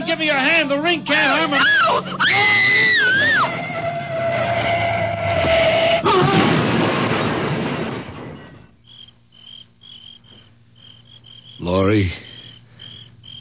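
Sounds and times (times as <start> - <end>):
speech: 0.1 - 3.6, 11.8 - 12.2
wavering high-pitched wail of a car: 1.5 - 6.6
car crashing into a tree: 5.4 - 8.6.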